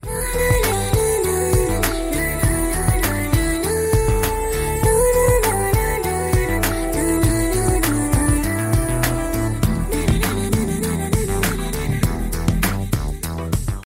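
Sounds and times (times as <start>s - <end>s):
romantic song: 0.0s - 13.8s.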